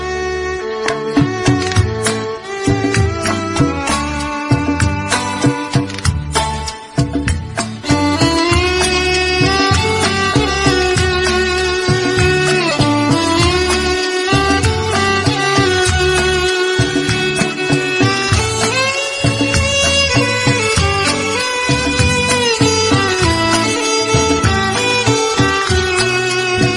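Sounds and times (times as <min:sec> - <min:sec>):
instrumental music: 0:00.0 - 0:26.7.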